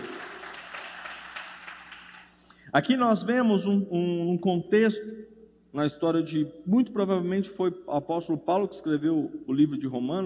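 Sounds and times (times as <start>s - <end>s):
church audience applauding: 0.0s - 2.4s
speech: 2.7s - 10.2s.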